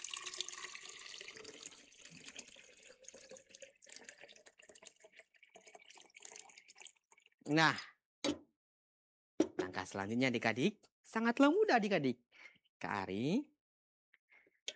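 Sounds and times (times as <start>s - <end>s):
water poured into a glass bottle: 0.0s - 7.4s
speech: 7.5s - 7.9s, 9.9s - 13.5s.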